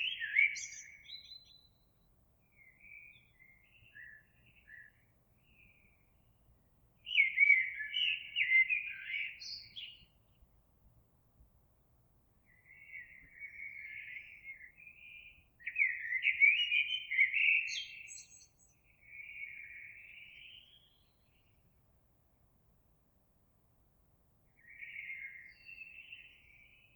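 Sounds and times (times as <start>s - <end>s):
Eurasian blackbird singing: 0.0s - 6.0s, 7.0s - 10.2s, 12.5s - 21.5s, 24.6s - 26.9s.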